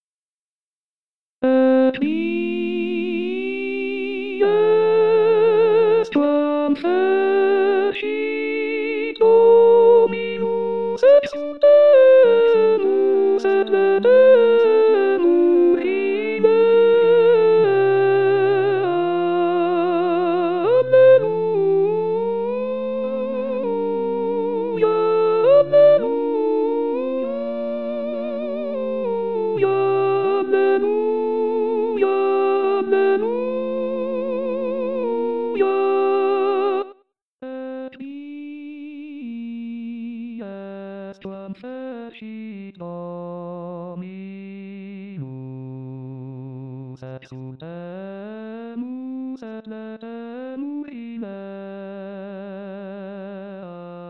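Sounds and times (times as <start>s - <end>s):
sopranos singing: 1.4s - 36.9s.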